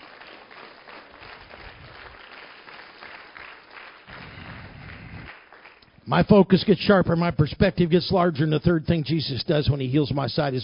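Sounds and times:
audience hand clap: 0.0 - 6.0
speech: 6.1 - 10.6.

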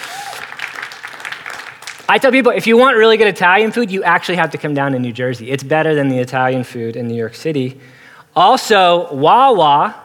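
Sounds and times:
audience applause: 0.0 - 2.1
speech: 2.1 - 10.0.

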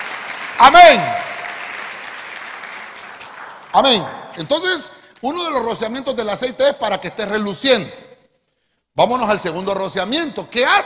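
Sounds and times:
audience applauding: 0.0 - 4.5
speech: 0.6 - 1.2, 3.7 - 8.0, 9.0 - 10.8.

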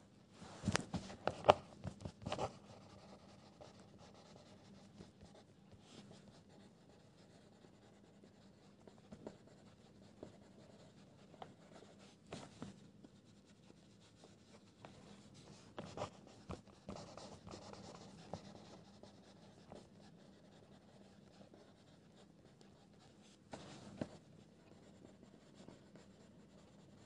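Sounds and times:
pencil scribbling: 1.0 - 27.0.

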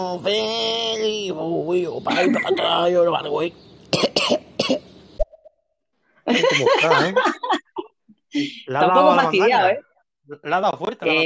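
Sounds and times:
speech: 0.0 - 4.9, 6.3 - 7.6, 8.3 - 11.2
laughter: 2.0 - 3.1, 6.3 - 9.4
coughing: 2.1 - 3.0, 3.9 - 4.9.

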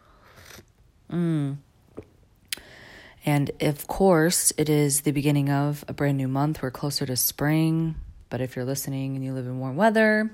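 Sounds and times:
person sipping coffee: 0.0 - 0.8
voiced hum or sigh: 1.1 - 1.7
speech: 1.1 - 2.1, 3.2 - 10.3.

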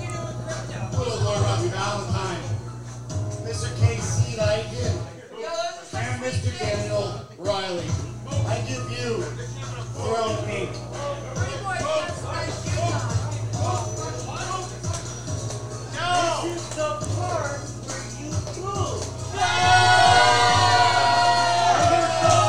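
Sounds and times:
people talking: 0.0 - 2.6, 3.4 - 19.1
fan cheering and yelling at a wrestling show: 19.3 - 22.4.

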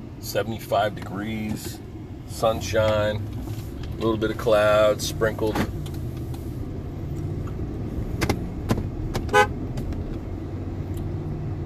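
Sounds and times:
engine rumble: 0.0 - 11.6
speech: 0.2 - 5.8
car horn toot: 9.3 - 9.6.

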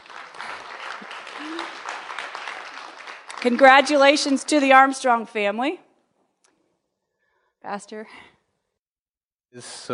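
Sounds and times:
audience clapping in welcome: 0.0 - 5.3
speech: 3.4 - 5.8, 7.7 - 8.3, 9.5 - 9.9.

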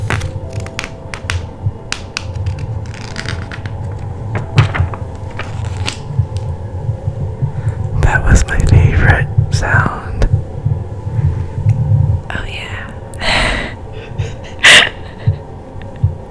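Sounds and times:
book pages being turned after a lick of the finger: 0.0 - 6.5
low steady hum: 0.0 - 16.2.

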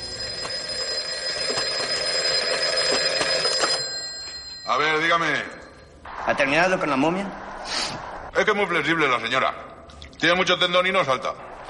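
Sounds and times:
old telephone bell ringing: 0.0 - 6.0
speech: 4.8 - 5.6, 6.3 - 7.4, 8.4 - 9.6, 10.2 - 11.5.

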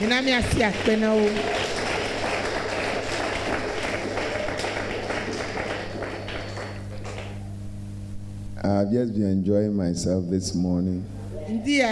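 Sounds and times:
speech: 0.0 - 1.7, 8.6 - 11.9
audience clapping: 0.0 - 7.4.

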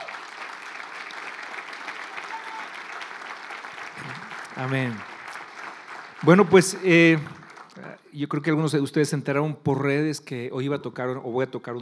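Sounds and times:
audience applause: 0.0 - 7.9
speech: 4.6 - 5.1, 6.2 - 11.8.

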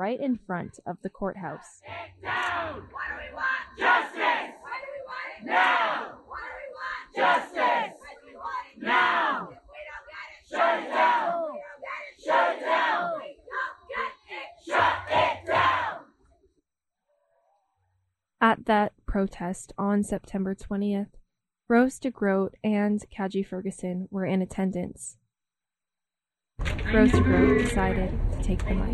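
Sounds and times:
speech: 0.0 - 4.6, 5.4 - 6.2, 7.1 - 8.0, 18.4 - 25.2, 26.6 - 28.9
large protest crowd chanting in the street: 1.8 - 16.1
low rumble: 26.7 - 28.9.

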